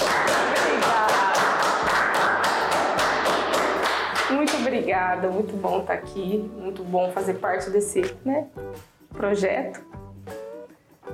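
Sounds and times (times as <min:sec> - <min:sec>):
group applause: 0:00.0 - 0:04.7
speech: 0:05.0 - 0:10.0.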